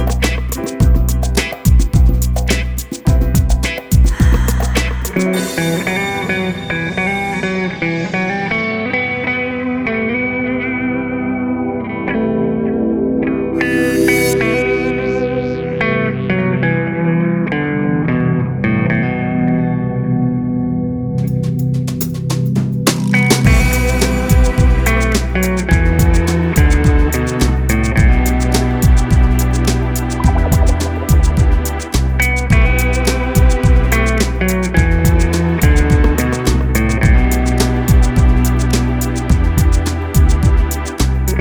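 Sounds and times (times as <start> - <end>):
deep guitar mix: 0.0 - 22.0, 22.7 - 41.3.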